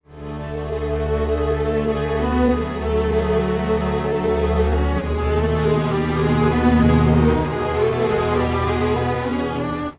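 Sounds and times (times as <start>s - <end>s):
time-stretched strings: 0.1s - 9.9s.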